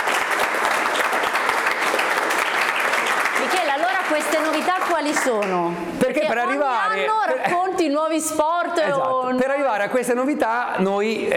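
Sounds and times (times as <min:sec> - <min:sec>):
audience applause: 0:00.0 - 0:05.6
speech: 0:04.5 - 0:11.3.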